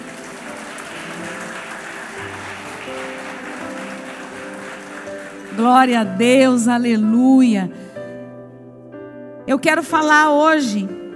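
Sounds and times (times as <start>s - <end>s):
audience applause: 0.0s - 6.1s
speech: 5.6s - 7.9s, 9.5s - 11.0s.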